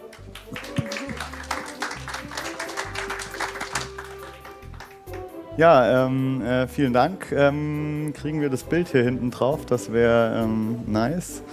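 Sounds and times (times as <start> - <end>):
crowd applauding: 0.0 - 5.4
speech: 5.6 - 11.5.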